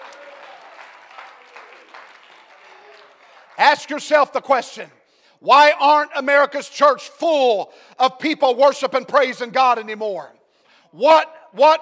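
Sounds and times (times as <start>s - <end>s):
audience clapping hands: 0.0s - 4.1s
speech: 3.6s - 11.7s.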